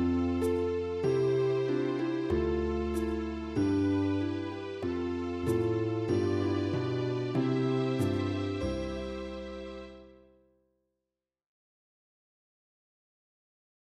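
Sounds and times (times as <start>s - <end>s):
instrumental music: 0.0s - 10.4s.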